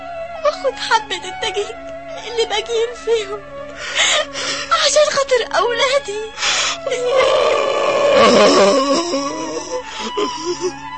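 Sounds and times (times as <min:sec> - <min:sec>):
speech: 0:00.6 - 0:10.9
man crying: 0:06.9 - 0:10.8.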